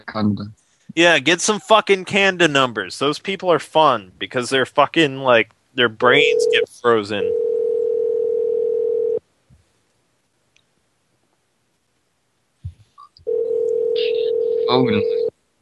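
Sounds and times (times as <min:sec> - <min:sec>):
speech: 0:00.0 - 0:07.4, 0:14.0 - 0:15.3
telephone dial tone: 0:07.3 - 0:09.2, 0:13.3 - 0:15.3.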